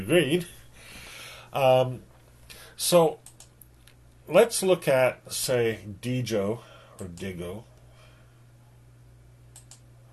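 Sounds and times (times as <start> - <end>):
speech: 0.0 - 0.6, 1.5 - 2.1, 2.8 - 3.2, 4.3 - 7.7
low steady electrical hum: 0.0 - 10.1
computer mouse clicks: 9.5 - 9.9.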